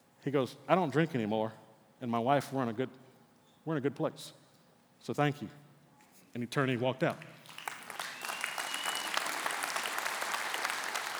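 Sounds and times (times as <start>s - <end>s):
speech: 0.2s - 3.0s, 3.6s - 4.4s, 5.0s - 5.6s, 6.3s - 7.4s
audience applause: 7.4s - 11.1s.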